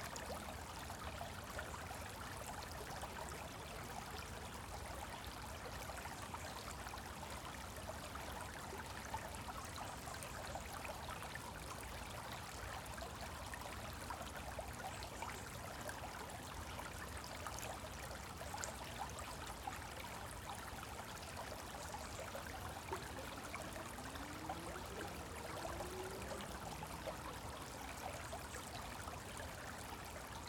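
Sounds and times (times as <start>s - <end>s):
woodland stream flowing: 0.0s - 30.4s.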